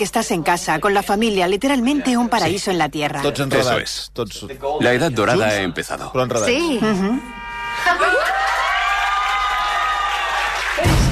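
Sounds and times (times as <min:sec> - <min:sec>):
speech: 0:00.0 - 0:08.3
group cheering: 0:07.6 - 0:11.0
laughter: 0:07.8 - 0:08.8
group clapping: 0:08.1 - 0:11.0.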